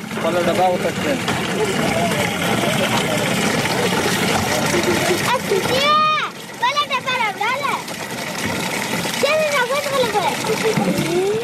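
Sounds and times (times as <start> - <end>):
water splashing into cans from a water tank in Kandahar: 0.0 - 11.4
children's voices: 4.6 - 8.0, 9.1 - 11.4.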